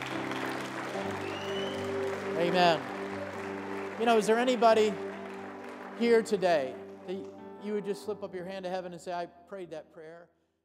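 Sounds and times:
audience cheering and applauding: 0.0s - 7.4s
speech: 2.4s - 3.0s, 4.0s - 5.1s, 6.0s - 10.4s.

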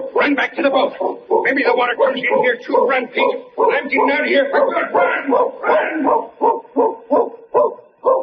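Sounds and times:
dog barking: 0.0s - 8.2s
speech: 0.2s - 7.3s.

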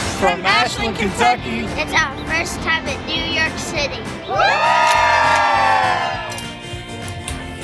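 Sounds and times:
speech: 0.2s - 6.2s
studio audience in New York City cheering and whooping on a television show: 4.3s - 6.3s.

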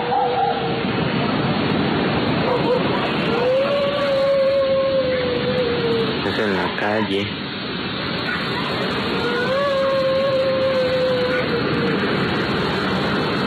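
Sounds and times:
constant rushing hiss of wind-like noise: 0.0s - 13.4s
thin drawn-out wailing scream in the street at night: 2.5s - 6.2s, 8.4s - 12.3s
speech: 6.4s - 7.4s.

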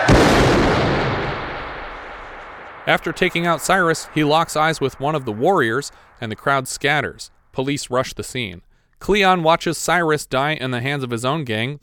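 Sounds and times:
gunshot: 0.0s - 6.2s
speech: 2.9s - 11.8s.

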